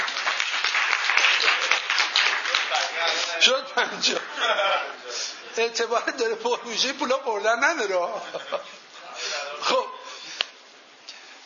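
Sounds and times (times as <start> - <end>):
audience applause: 0.0 - 3.4
speech: 3.4 - 9.8
laughter: 4.0 - 5.4, 7.9 - 9.8.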